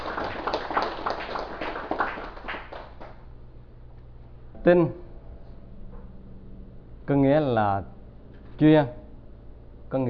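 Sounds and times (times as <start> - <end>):
audience applauding: 0.0 - 3.3
speech: 4.6 - 5.0, 7.1 - 8.0, 8.6 - 9.0.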